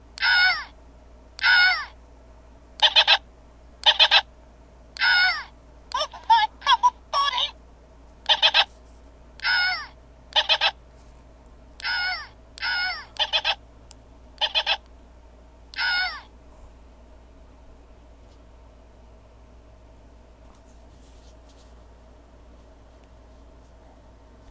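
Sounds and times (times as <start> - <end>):
Happy Meal toy sound: 0.2 - 0.7, 1.4 - 1.9, 2.8 - 3.2, 3.8 - 4.3, 5.0 - 7.6, 8.2 - 8.7, 9.4 - 10.8, 11.8 - 13.6, 14.4 - 14.9, 15.7 - 16.3.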